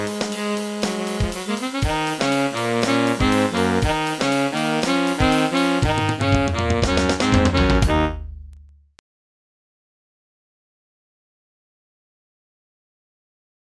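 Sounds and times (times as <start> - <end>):
MIDI music: 0.0 - 8.7.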